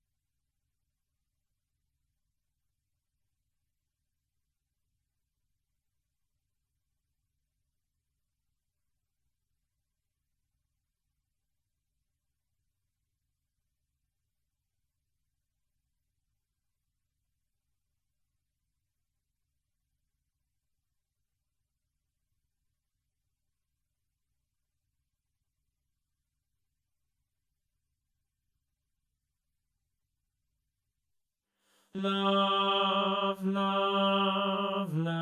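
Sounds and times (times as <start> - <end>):
tenor voice singing alone: 32.0 - 35.2.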